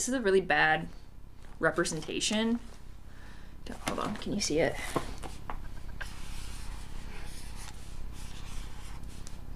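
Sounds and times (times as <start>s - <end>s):
speech: 0.0s - 1.0s, 1.6s - 2.8s, 3.6s - 5.4s
pen or marker scratching on paper drawing a diagram: 6.0s - 9.3s.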